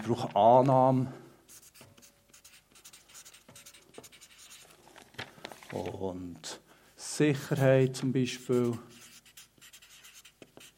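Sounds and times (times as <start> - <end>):
speech: 0.0 - 1.2, 5.7 - 6.6, 7.2 - 8.9
pen scratching across paper: 1.5 - 4.7, 8.4 - 10.7.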